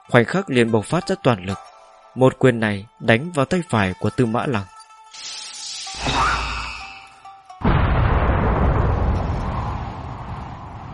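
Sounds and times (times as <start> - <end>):
speech: 0.1 - 4.7
loud explosion: 7.6 - 10.9.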